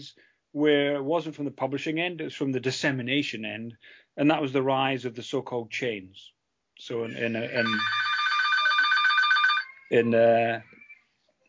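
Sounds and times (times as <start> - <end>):
speech: 0.0 - 8.0, 9.9 - 10.8
mobile phone ringtone: 7.6 - 10.0.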